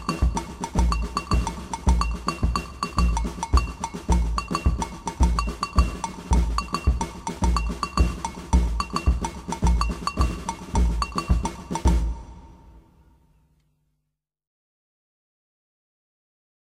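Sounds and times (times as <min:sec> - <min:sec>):
agogo bells: 0:00.0 - 0:12.2.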